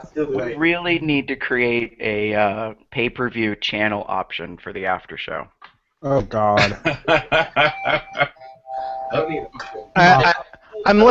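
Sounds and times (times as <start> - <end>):
speech: 0.1 - 11.0
laughter: 6.4 - 8.5, 10.0 - 10.7
doorbells ringing: 7.5 - 11.0.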